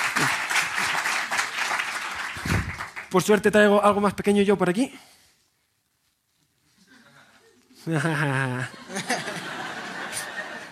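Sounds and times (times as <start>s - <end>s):
audience applauding: 0.0s - 3.4s
speech: 0.2s - 0.4s, 3.1s - 5.1s, 7.9s - 9.1s
laughter: 6.7s - 10.7s.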